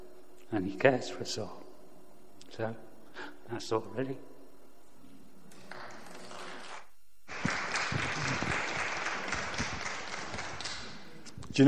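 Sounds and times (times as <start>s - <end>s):
speech: 0.5s - 1.6s, 2.5s - 4.3s
applause: 5.7s - 11.0s.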